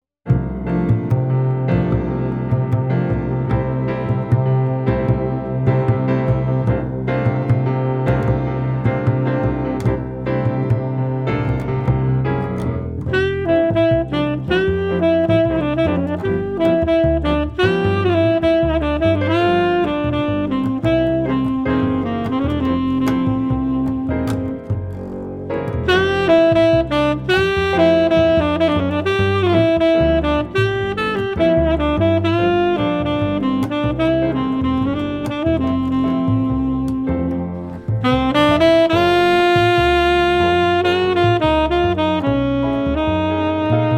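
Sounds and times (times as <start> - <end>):
jazz ensemble playing: 0.3 - 43.9.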